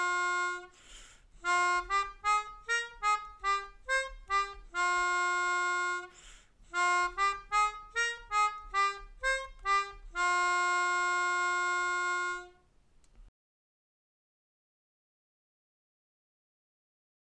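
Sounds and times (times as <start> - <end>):
melodica melody: 0.0 - 12.7.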